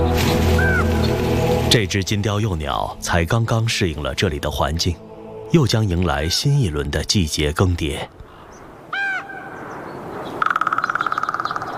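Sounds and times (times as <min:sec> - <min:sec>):
carrion crow calling: 0:00.6 - 0:00.9, 0:08.3 - 0:11.7
speech: 0:01.7 - 0:08.2.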